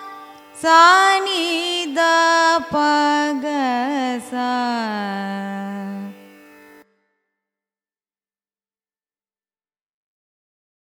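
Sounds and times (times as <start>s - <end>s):
carnatic raga scale ascending and descending: 0.0s - 6.8s.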